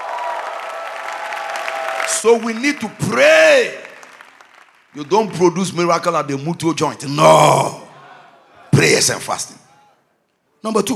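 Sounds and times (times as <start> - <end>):
crowd clapping: 0.0 - 6.4
speech: 2.1 - 3.8, 5.0 - 7.8, 8.8 - 9.6, 10.6 - 10.9.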